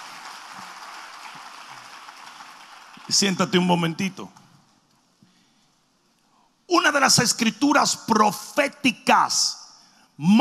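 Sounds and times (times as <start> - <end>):
audience applauding: 0.0 - 3.6
speech: 3.1 - 4.4, 7.0 - 9.6, 10.2 - 10.3.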